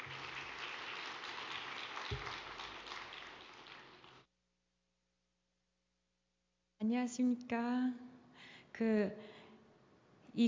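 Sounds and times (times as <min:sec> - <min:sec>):
crowd clapping: 0:00.0 - 0:04.3
speech: 0:06.9 - 0:08.1, 0:08.8 - 0:09.4.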